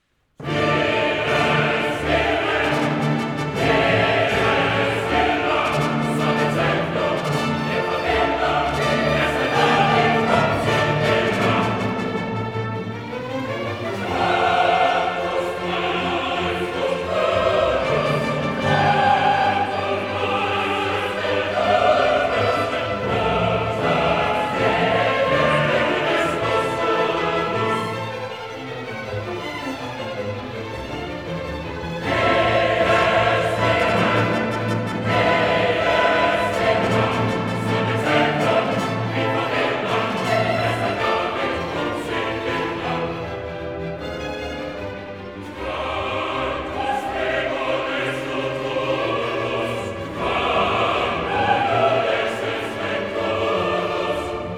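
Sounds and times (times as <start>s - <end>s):
choral requiem mass music: 0.0s - 54.5s.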